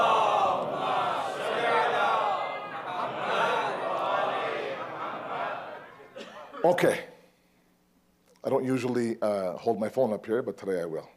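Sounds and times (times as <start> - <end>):
large crowd chanting salawat in a banquet hall: 0.0 - 6.3
speech: 6.6 - 7.1, 8.4 - 11.1.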